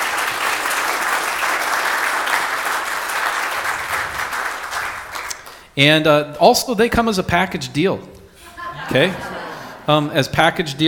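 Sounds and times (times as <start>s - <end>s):
crowd applause: 0.0s - 5.3s
speech: 5.8s - 8.2s, 8.9s - 9.3s, 9.9s - 10.8s
laughter: 8.4s - 10.1s.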